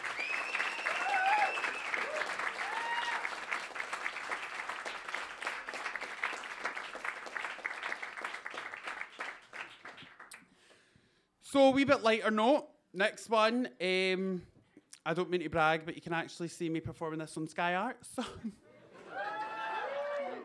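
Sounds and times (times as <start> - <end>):
audience applause at open mic: 0.0 - 10.4, 19.0 - 20.4
speech: 11.5 - 14.5, 15.1 - 18.6.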